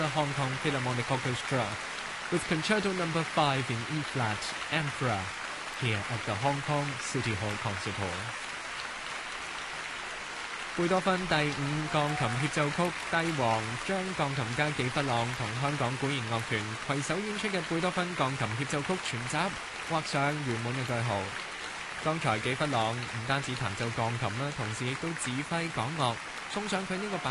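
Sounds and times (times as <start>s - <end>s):
speech: 0.0s - 8.5s, 10.8s - 27.2s
concert hall applause from a large audience: 0.0s - 27.2s.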